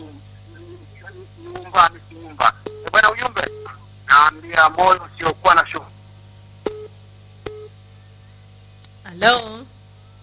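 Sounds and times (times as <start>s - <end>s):
telephone busy tone after a radio caller's call drops: 2.7s - 3.8s, 6.7s - 6.9s, 7.5s - 7.7s
speech: 4.2s - 5.1s.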